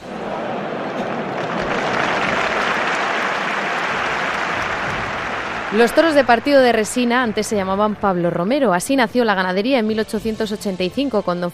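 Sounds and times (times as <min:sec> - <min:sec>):
audience ovation applause: 0:00.0 - 0:08.2
speech: 0:05.7 - 0:11.5.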